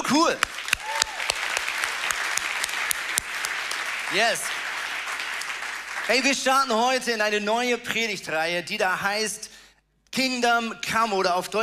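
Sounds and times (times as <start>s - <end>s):
speech: 0.1s - 0.5s, 4.1s - 4.6s, 6.1s - 9.5s, 10.2s - 11.6s
audience applause: 0.4s - 6.5s.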